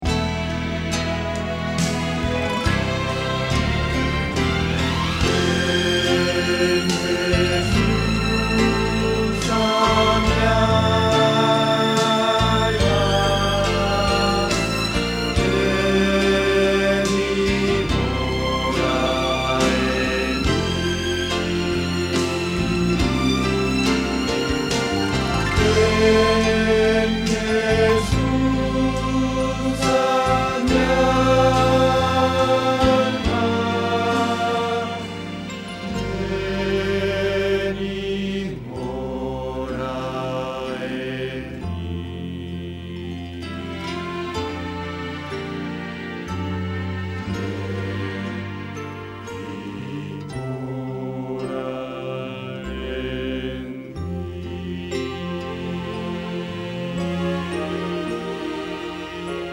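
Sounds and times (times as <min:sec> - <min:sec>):
bass: 0:00.0 - 0:59.5.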